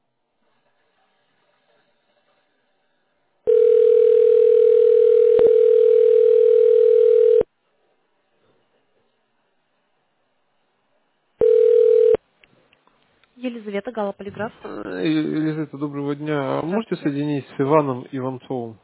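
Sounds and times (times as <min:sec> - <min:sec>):
telephone ringing tone on the line: 0:03.5 - 0:07.5, 0:11.4 - 0:12.2
speech: 0:14.0 - 0:18.8.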